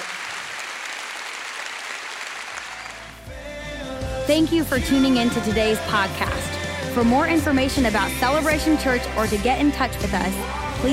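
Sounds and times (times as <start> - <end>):
crowd clapping: 0.0 - 3.3
speech: 4.3 - 10.9.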